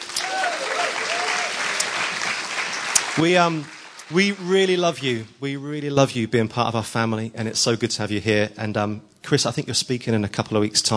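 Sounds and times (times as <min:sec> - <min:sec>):
audience applause: 0:00.0 - 0:05.3
faint voices and whoops: 0:00.1 - 0:01.9
speech: 0:03.2 - 0:10.9.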